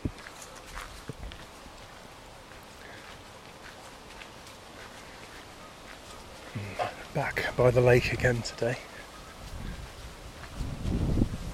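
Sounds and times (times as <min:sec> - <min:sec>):
wind on a breezy overcast autumn day by a lake: 0:06.5 - 0:11.5
speech: 0:07.2 - 0:08.9.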